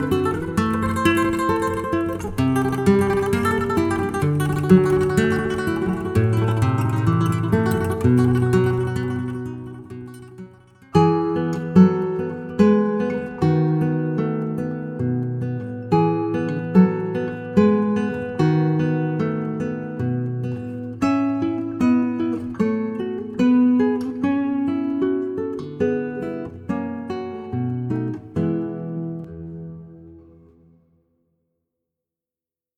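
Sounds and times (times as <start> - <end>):
Spanish guitar music mix: 0.0 - 30.9.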